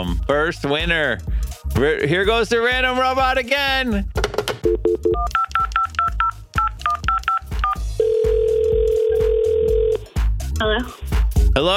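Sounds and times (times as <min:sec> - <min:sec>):
speech: 0:00.0 - 0:05.4, 0:10.6 - 0:11.0, 0:11.6 - 0:11.7
touch-tone keypad beeps: 0:04.6 - 0:10.0
steady telephone tone: 0:07.0 - 0:10.0.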